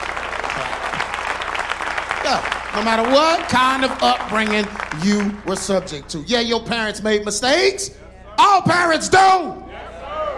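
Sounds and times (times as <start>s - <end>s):
audience applause: 0.0s - 6.1s
speech: 2.3s - 9.6s.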